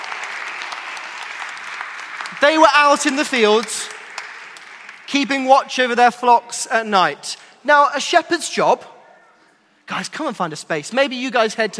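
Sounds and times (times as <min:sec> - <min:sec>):
audience applause: 0:00.0 - 0:05.5
speech: 0:02.4 - 0:04.0, 0:05.1 - 0:08.9, 0:09.9 - 0:11.7.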